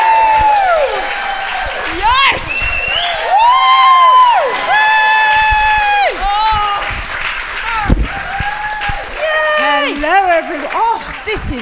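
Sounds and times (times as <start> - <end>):
audience whooping shouts: 0.0 - 7.0, 7.6 - 10.0
audience on the Isle of Wight applauding a guest's entrance: 0.0 - 11.6.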